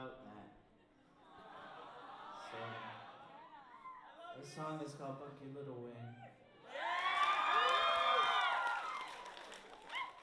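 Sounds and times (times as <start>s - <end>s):
speech: 4.4s - 6.8s
audience clapping: 6.9s - 10.2s.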